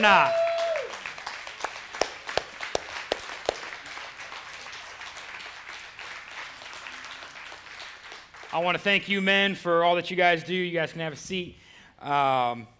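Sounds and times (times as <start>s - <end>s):
speech: 0.0s - 0.4s, 8.5s - 12.7s
audience applause: 0.0s - 8.5s.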